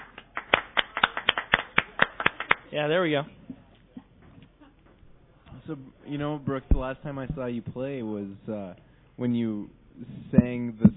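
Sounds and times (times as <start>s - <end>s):
sharp dry hand claps as applause sound effect during a mock sitcom taping: 0.0s - 2.7s
speech: 2.7s - 3.4s, 5.7s - 10.9s.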